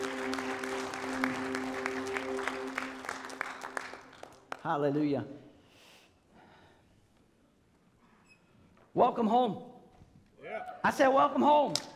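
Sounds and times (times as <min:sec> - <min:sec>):
church congregation clapping in praise during a Sunday service: 0:00.0 - 0:05.1, 0:11.7 - 0:11.9
speech: 0:04.7 - 0:05.4, 0:09.0 - 0:09.7, 0:10.8 - 0:11.9.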